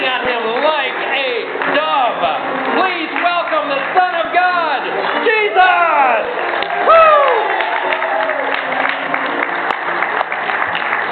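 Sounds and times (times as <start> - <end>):
crowd applauding: 0.0 - 11.1
crowd cheering and shouting: 0.2 - 9.4.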